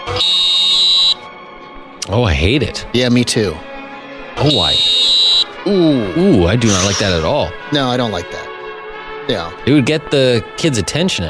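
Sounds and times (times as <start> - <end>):
teacher's electric handheld whistle: 0.0 - 1.3, 4.4 - 5.6
speech: 0.2 - 0.4, 2.1 - 3.7, 4.4 - 5.0, 5.6 - 8.4, 9.3 - 11.2.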